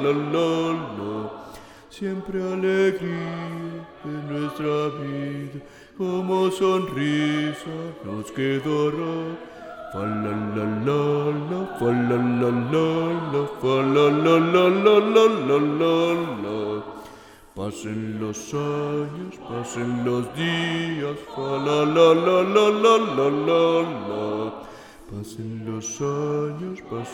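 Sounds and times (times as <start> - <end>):
bass voices singing a youth song: 0.0 - 27.1.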